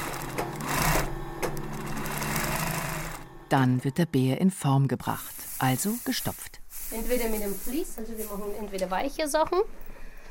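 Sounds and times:
sewing machine stitching teddy bear fabric: 0:00.0 - 0:03.8
speech: 0:03.5 - 0:09.8.

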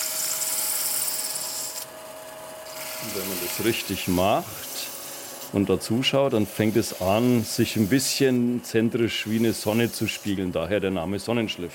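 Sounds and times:
sandpaper rubbing by hand over a brass compass housing: 0:02.7 - 0:05.6, 0:06.3 - 0:08.4, 0:09.1 - 0:10.5
speech: 0:03.0 - 0:04.7, 0:05.5 - 0:11.7.

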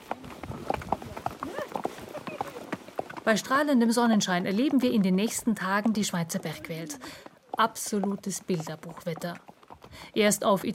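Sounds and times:
horse hooves clip-clopping during a hike through the Swiss mountains: 0:00.0 - 0:10.7
speech: 0:03.3 - 0:10.7.

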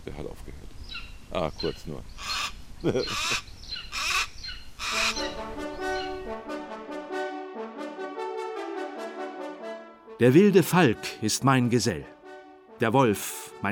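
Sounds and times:
speech: 0:00.1 - 0:03.5, 0:10.2 - 0:12.2, 0:12.8 - 0:13.7
golden eagle calling: 0:00.9 - 0:06.3.

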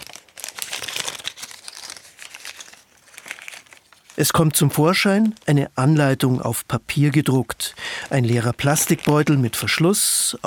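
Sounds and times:
stiff foil-laminated pouch crinkling while being cut open: 0:00.0 - 0:05.5, 0:07.9 - 0:10.4
speech: 0:04.2 - 0:10.4.

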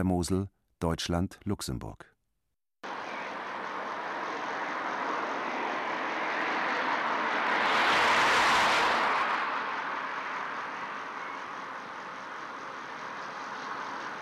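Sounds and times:
speech: 0:00.0 - 0:02.1
heavy road traffic at border crossing: 0:02.8 - 0:14.2.

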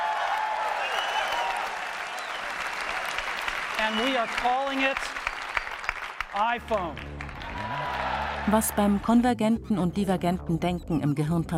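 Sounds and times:
audience applause at iPhone launch: 0:00.0 - 0:08.9
speech: 0:03.8 - 0:05.2, 0:06.3 - 0:11.5.

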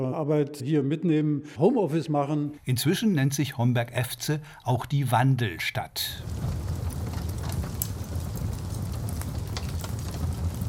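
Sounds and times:
speech: 0:00.0 - 0:06.6
fireplace fire crackling in a farmhouse in Niederurf: 0:06.0 - 0:10.6.

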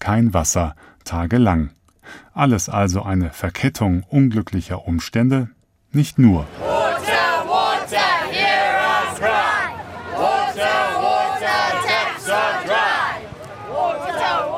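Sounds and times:
speech: 0:00.0 - 0:06.7
large protest crowd chanting in unison: 0:06.4 - 0:14.5.

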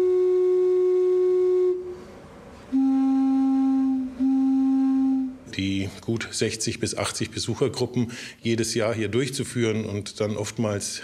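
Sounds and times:
single organ pipe tone: 0:00.0 - 0:02.1, 0:02.7 - 0:05.5
speech: 0:06.1 - 0:11.0.

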